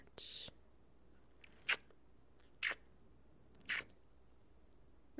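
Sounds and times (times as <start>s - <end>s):
wet noises: 1.4s - 1.9s, 2.6s - 2.8s, 3.6s - 3.9s.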